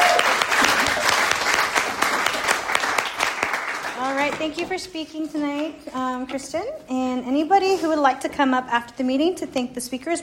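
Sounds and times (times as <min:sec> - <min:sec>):
audience applause: 0:00.0 - 0:04.2
speech: 0:04.4 - 0:10.2.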